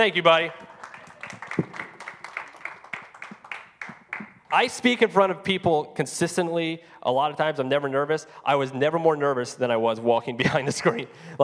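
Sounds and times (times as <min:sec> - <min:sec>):
speech: 0:00.0 - 0:00.6, 0:04.5 - 0:11.4
audience applause: 0:00.0 - 0:04.7
laughter: 0:00.0 - 0:04.7, 0:10.4 - 0:11.4.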